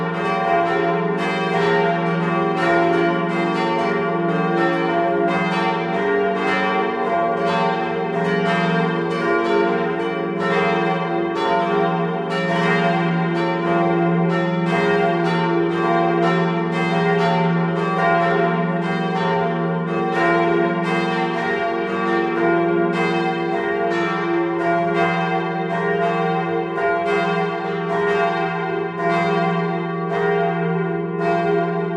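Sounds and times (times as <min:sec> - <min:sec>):
church bells ringing: 0:00.0 - 0:31.9.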